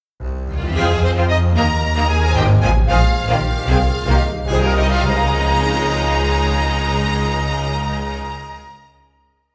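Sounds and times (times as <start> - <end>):
opening jingle: 1.0 - 8.2.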